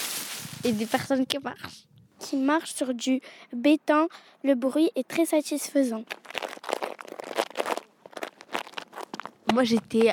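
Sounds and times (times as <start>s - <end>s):
dry dead leaves crunched and crumpled: 0.0s - 1.2s, 6.1s - 9.4s
speech: 0.6s - 6.2s, 9.5s - 10.1s.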